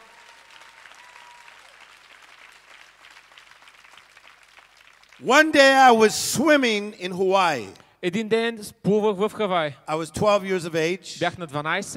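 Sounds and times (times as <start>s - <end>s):
audience clapping: 0.0s - 6.0s
speech: 5.2s - 11.9s.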